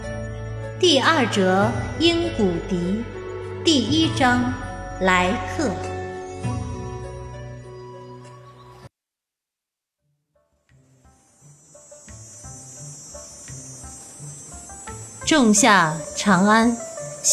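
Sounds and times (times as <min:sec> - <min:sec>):
cicadas buzzing on a hot summer day: 0:00.0 - 0:08.9, 0:10.7 - 0:17.3
music: 0:00.0 - 0:08.9, 0:10.3 - 0:17.3
speech: 0:00.8 - 0:06.6, 0:15.4 - 0:17.3.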